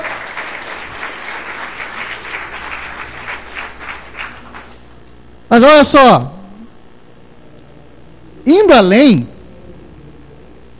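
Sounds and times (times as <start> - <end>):
applause: 0.0 - 4.8
speech: 5.6 - 6.4, 8.5 - 9.3.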